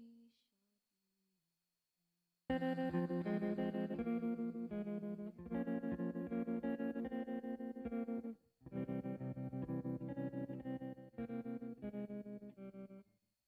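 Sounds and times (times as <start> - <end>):
recorded 1960s pop song with tremolo guitar: 2.5 - 12.9.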